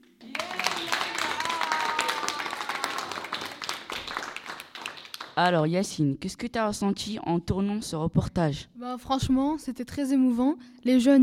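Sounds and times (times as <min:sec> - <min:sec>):
audience applause: 0:00.2 - 0:05.4
speech: 0:05.4 - 0:11.2.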